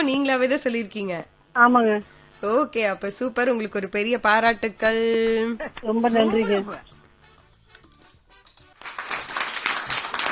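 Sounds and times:
speech: 0.0s - 6.9s
applause for a correct answer: 8.5s - 10.3s.

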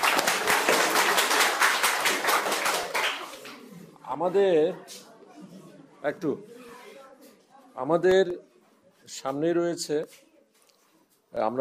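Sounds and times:
group clapping for a child: 0.0s - 3.8s
speech: 4.2s - 5.0s, 6.0s - 6.6s, 7.8s - 8.5s, 9.1s - 10.2s, 11.3s - 11.5s.

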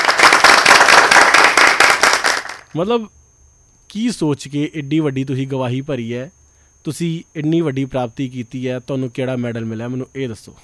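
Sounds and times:
audience clapping at a celebration for a 194-year-old tortoise: 0.0s - 2.7s
speech: 2.8s - 3.2s, 3.9s - 10.6s.

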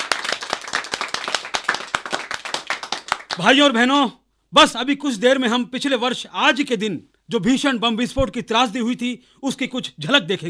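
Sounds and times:
audience applause: 0.0s - 3.5s
speech: 3.4s - 10.4s.

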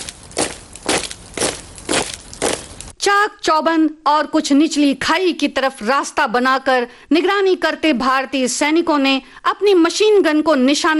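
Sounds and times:
footsteps approaching: 0.0s - 3.0s
speech: 3.0s - 10.9s.

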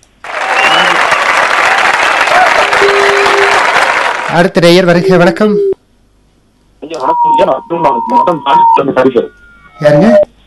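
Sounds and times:
applause: 0.2s - 4.6s
speech: 4.3s - 5.7s, 6.9s - 10.2s.

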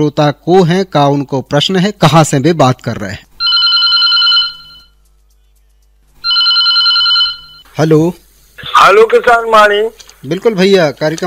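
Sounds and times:
speech: 0.0s - 3.3s, 7.8s - 11.2s
telephone ringing: 3.4s - 5.0s, 6.2s - 7.7s.

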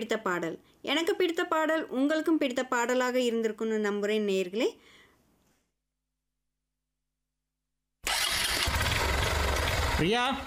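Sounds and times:
speech: 0.0s - 5.0s, 10.0s - 10.4s
motorcycle engine starting and idling: 8.5s - 10.4s.

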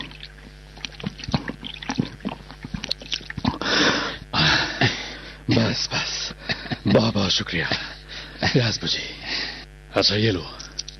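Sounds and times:
person gulping a drink of water: 0.0s - 4.2s
breathy rushing bursts of air: 3.5s - 5.5s
speech: 6.9s - 9.1s, 10.0s - 10.6s.

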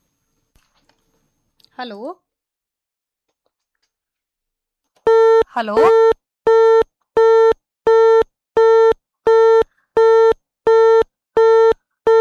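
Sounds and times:
speech: 1.8s - 2.3s, 5.5s - 6.1s
phone line busy tone after a call is cut off: 5.1s - 12.1s.

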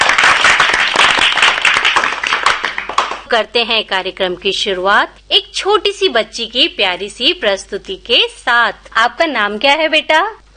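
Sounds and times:
crowd applauding: 0.0s - 3.3s
speech: 3.3s - 10.5s.

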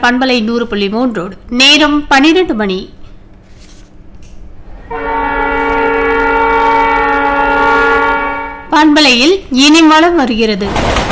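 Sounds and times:
speech: 0.0s - 3.0s, 8.8s - 11.0s
express train passing with low rail rumble: 4.2s - 11.0s
express train horn: 4.8s - 8.8s.

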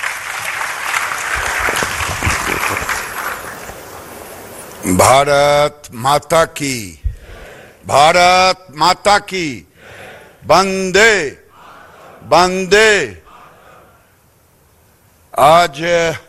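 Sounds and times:
crowd applause welcoming India's Textiles Minister at a National Handloom Day event: 0.0s - 4.5s
man speaking loudly: 4.8s - 7.1s, 7.8s - 9.7s, 10.4s - 11.5s, 12.2s - 13.4s, 15.4s - 16.2s
speech: 4.9s - 7.0s, 7.8s - 9.7s, 10.4s - 11.4s, 12.2s - 13.2s, 15.4s - 16.2s.

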